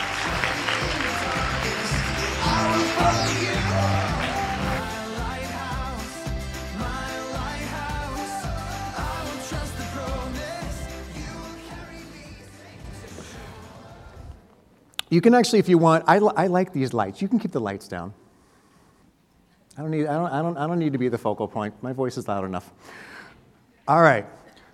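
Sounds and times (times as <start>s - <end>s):
crowd applauding: 0.0s - 6.5s
beat-driven music: 0.0s - 14.2s
speech: 15.1s - 18.2s, 19.8s - 23.1s, 23.9s - 24.4s.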